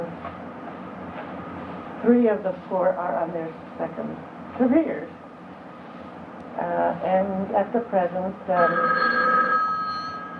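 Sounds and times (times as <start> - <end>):
speech: 2.0 - 5.2, 6.9 - 9.5
telephone bell ringing: 8.5 - 10.3.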